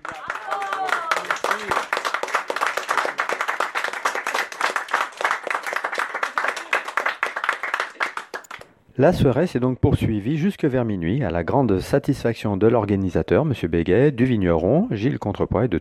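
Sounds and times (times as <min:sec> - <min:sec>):
dinner guests applauding: 0:00.0 - 0:08.7
speech: 0:09.0 - 0:15.7.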